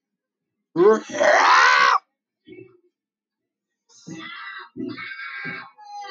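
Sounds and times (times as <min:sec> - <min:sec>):
man screaming: 0:00.8 - 0:02.0.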